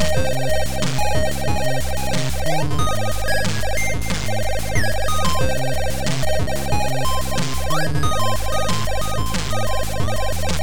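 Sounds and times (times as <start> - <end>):
fast ambient music: 0.0 - 10.6.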